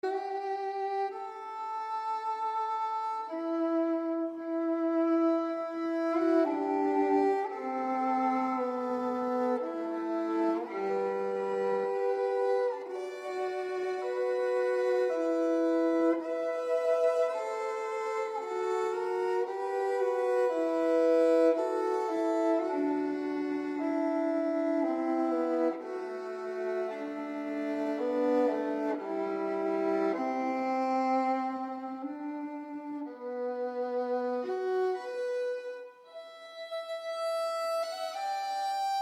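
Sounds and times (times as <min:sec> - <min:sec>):
violin sonata in A minor: 0:00.0 - 0:38.9.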